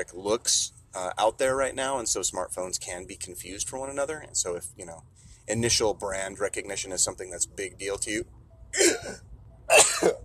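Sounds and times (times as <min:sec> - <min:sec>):
speech: 0:00.0 - 0:09.3
person sneezing: 0:08.8 - 0:10.2.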